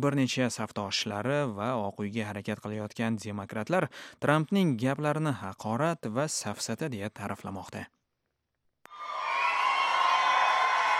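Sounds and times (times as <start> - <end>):
speech: 0.0 - 8.0
crowd cheering and clapping for Donald Trump in South Carolina: 8.9 - 10.9.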